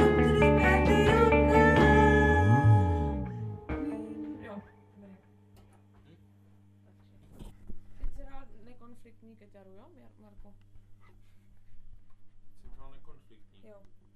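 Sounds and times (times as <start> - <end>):
person singing: 0.0 - 4.7
guitar: 0.0 - 6.0.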